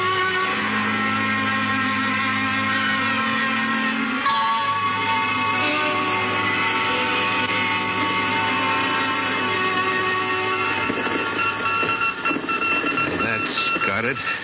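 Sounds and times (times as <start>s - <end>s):
Morse code signal: 0.0s - 14.4s.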